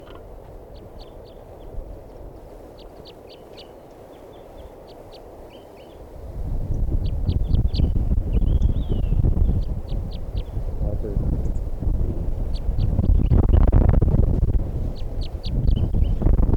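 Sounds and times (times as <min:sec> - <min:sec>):
wind noise: 0:00.0 - 0:03.3, 0:04.5 - 0:16.5
wild bird calling outdoors in high-pitched chirps: 0:00.0 - 0:06.0, 0:06.7 - 0:10.7, 0:12.4 - 0:13.6, 0:14.9 - 0:16.4.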